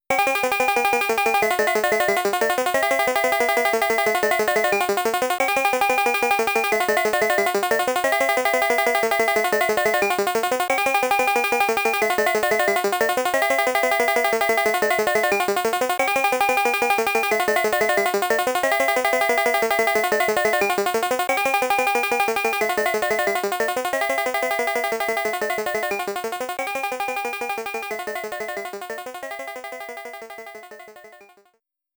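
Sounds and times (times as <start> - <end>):
music: 0.1 - 31.6.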